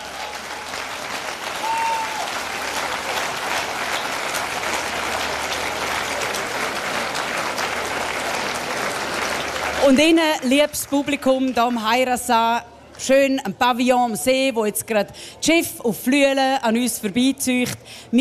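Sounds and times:
audience applause: 0:00.0 - 0:11.7
speech: 0:09.9 - 0:18.1.

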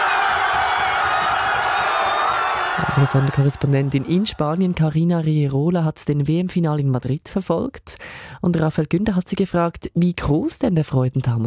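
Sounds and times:
crowd in Madrid cheering after the World Cup final whistle: 0:00.0 - 0:05.0
speech: 0:03.0 - 0:11.4.

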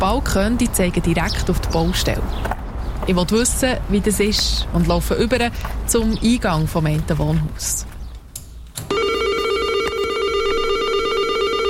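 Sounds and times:
speech: 0:00.0 - 0:07.9
apartment entrance door buzzer: 0:08.9 - 0:11.6.

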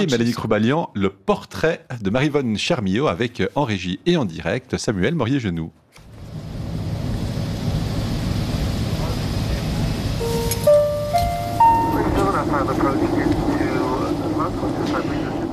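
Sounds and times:
speech: 0:00.0 - 0:06.0, 0:12.4 - 0:13.4, 0:14.5 - 0:15.3
airplane cabin drone: 0:06.1 - 0:15.5
rising chime: 0:10.2 - 0:12.7
crackling loudspeaker announcement inside airplane cabin: 0:10.2 - 0:13.5.

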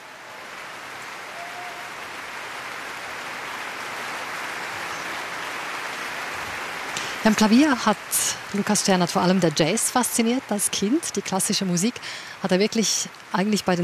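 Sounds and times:
orchestra applauding: 0:00.0 - 0:10.7
speech: 0:07.2 - 0:13.8.

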